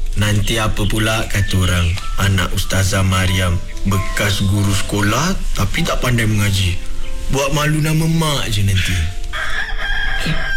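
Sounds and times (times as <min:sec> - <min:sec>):
speech: 0:00.2 - 0:09.2, 0:10.2 - 0:10.5
rooster crowing: 0:09.3 - 0:10.5.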